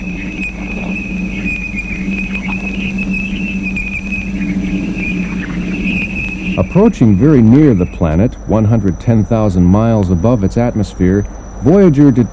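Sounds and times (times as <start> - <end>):
space plasma waves from heavier ions: 0.0 - 8.6
speech: 6.6 - 12.3.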